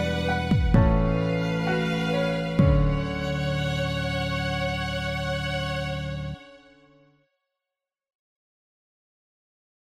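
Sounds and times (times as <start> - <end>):
full strings: 0.0 - 7.1.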